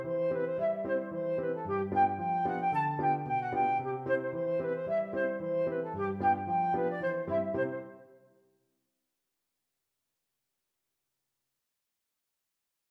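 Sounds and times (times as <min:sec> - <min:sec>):
flute playing a polka: 0:00.0 - 0:08.2.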